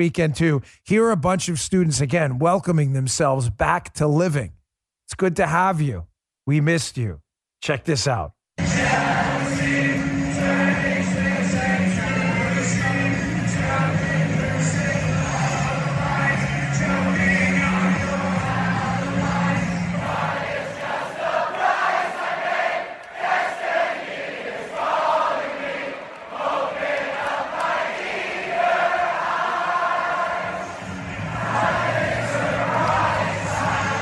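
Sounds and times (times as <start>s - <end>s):
speech: 0.0s - 9.1s
crowd of students singing at a University of Michigan football game: 8.6s - 34.0s.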